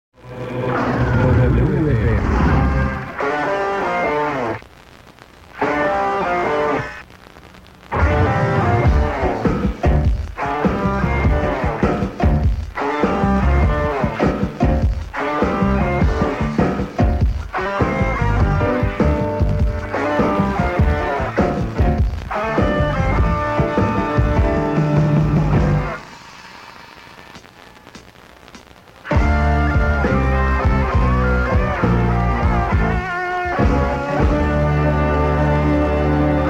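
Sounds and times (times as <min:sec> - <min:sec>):
radio jingle: 0:00.2 - 0:36.4.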